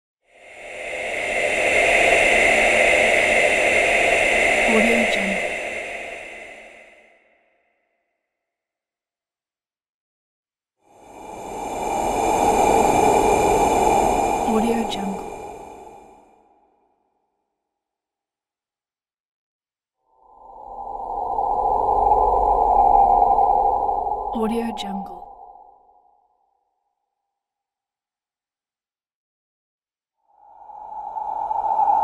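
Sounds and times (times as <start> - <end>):
ghostly whispers: 0.3 - 7.6, 10.9 - 16.6, 20.1 - 25.8, 30.2 - 32.0.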